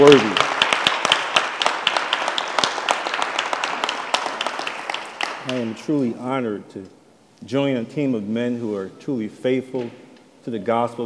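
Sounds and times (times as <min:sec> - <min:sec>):
speech: 0:00.0 - 0:00.4, 0:05.7 - 0:11.0
audience clapping: 0:00.0 - 0:06.1.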